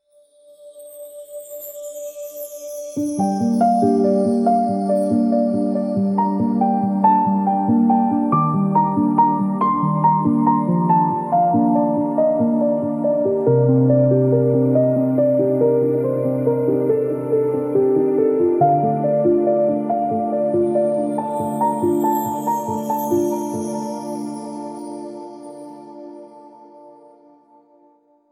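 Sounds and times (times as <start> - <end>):
dreamy ethereal drift: 1.2 - 27.8.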